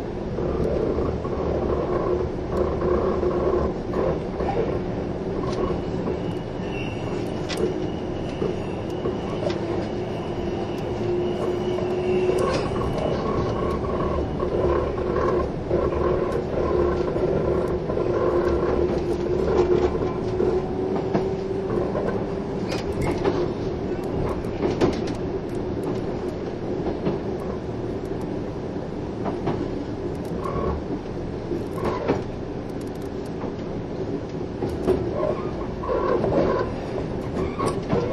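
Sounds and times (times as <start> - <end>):
Kintetsu 16000 series Yoshino Express train running: 0.0 - 38.1.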